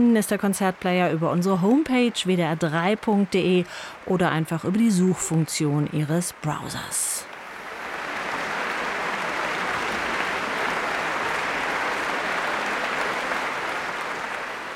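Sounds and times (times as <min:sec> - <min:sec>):
speech: 0:00.0 - 0:07.3
large concert audience applause: 0:07.4 - 0:14.7.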